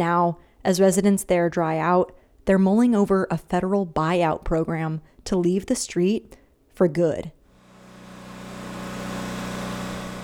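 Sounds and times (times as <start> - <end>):
speech: 0.0 - 7.4
generator engine pumping water from a house: 7.5 - 10.2.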